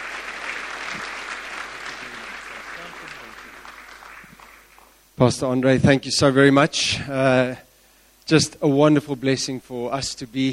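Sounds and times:
audience clapping at a church gathering: 0.0 - 5.0
speech: 5.2 - 7.7, 8.3 - 10.5.

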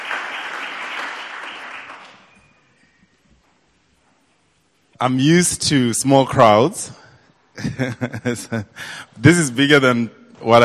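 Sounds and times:
audience applause welcoming a speaker: 0.0 - 2.6
speech: 5.0 - 7.0, 7.6 - 10.6
laughter: 7.6 - 8.8.

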